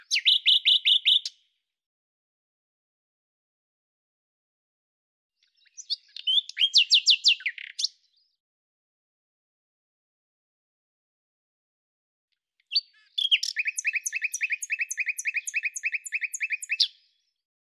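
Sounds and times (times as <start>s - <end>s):
common nightingale singing: 0.0s - 1.4s, 5.4s - 8.3s, 12.6s - 17.2s.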